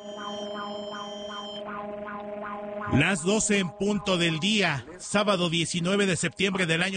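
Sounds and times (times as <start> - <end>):
Mexico's seismic alert siren during the second 2026 national earthquake drill: 0.0 - 5.2
speech: 2.9 - 6.9.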